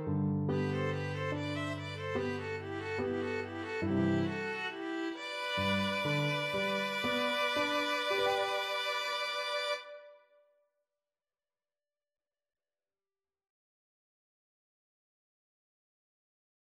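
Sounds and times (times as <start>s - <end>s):
violin and viola duet: 0.5s - 10.2s.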